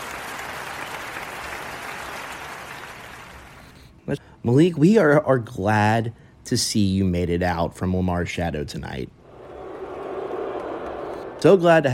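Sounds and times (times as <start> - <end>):
crowd clapping: 0.0 - 3.8, 9.4 - 11.9
speech: 4.1 - 9.2, 11.4 - 11.9.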